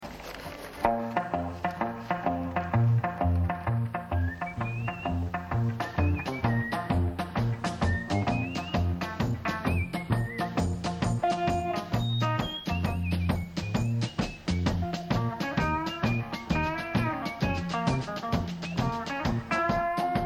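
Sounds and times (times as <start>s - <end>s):
improvised music: 0.8s - 20.2s.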